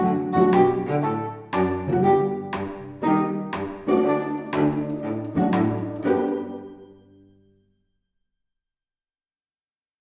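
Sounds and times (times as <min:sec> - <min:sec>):
orchestral music: 0:00.0 - 0:07.4.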